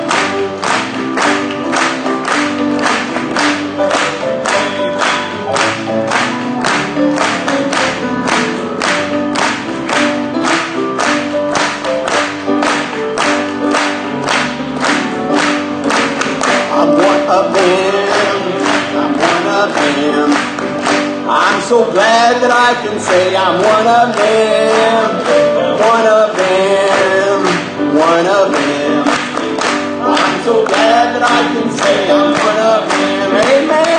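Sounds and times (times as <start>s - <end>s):
audience clapping along to song: 0.0s - 21.7s, 22.4s - 33.9s
music and singing: 0.0s - 33.9s
speech: 22.8s - 24.6s.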